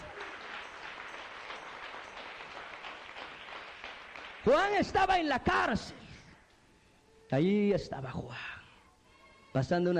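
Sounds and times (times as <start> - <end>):
audience applause: 0.0 - 5.0
speech: 4.4 - 6.0, 7.3 - 8.5, 9.5 - 9.9.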